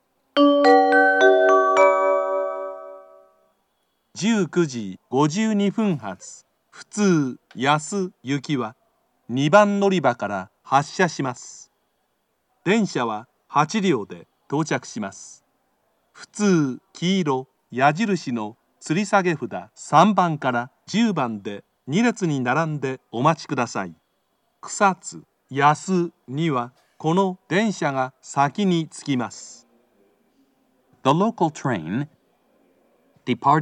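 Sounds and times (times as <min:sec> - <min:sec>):
local train station ambience in Kyoto: 0:00.0 - 0:33.5.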